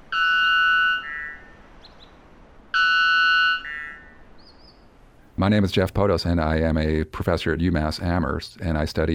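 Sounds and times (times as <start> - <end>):
bird singing buzzy calls: 0.0 - 5.0
speech: 5.4 - 9.1.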